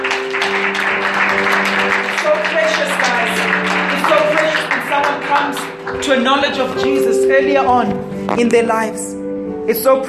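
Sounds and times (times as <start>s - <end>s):
crowd clapping: 0.0s - 7.1s
speech: 5.4s - 10.0s.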